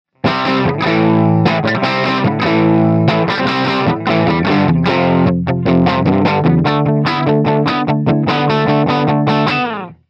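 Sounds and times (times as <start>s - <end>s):
rock music: 0.2s - 10.0s.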